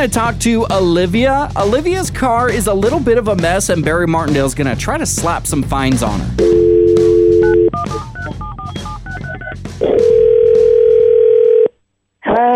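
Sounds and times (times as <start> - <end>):
speech: 0.0 - 6.6
telephone keypad beeps: 7.3 - 9.6
telephone dial tone: 9.9 - 11.7.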